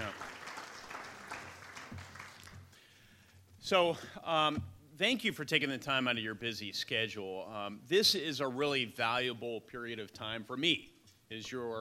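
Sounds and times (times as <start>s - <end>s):
faint audience applause at a community event hosted by an elected representative: 0.0s - 2.9s
speech: 3.7s - 11.7s.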